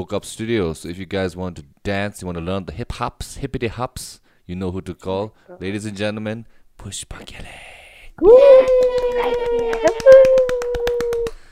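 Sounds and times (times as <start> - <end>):
speech: 0.0 - 10.3
rhythmic clapping: 8.3 - 11.5.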